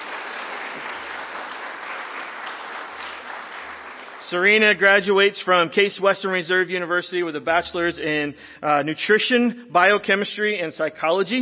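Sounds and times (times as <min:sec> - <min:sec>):
audience applause: 0:00.0 - 0:04.8
speech: 0:04.2 - 0:11.4.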